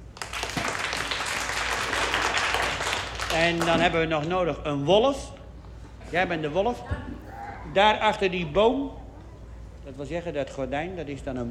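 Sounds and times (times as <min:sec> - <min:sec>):
audience applause: 0:00.0 - 0:03.7
speech: 0:03.3 - 0:05.4, 0:06.1 - 0:09.0, 0:09.8 - 0:11.4.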